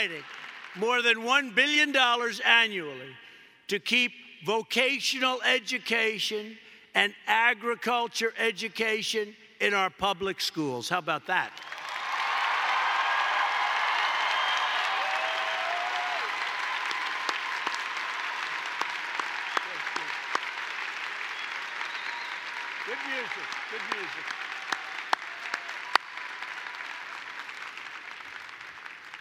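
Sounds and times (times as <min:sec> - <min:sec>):
crowd applause: 0:00.0 - 0:00.8, 0:11.6 - 0:29.1
speech: 0:00.0 - 0:11.7.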